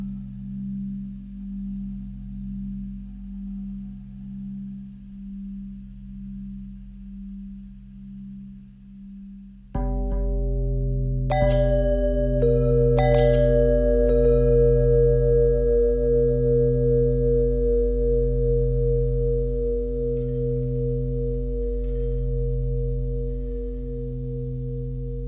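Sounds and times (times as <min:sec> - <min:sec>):
long bell tones bending: 0:09.8 - 0:25.2.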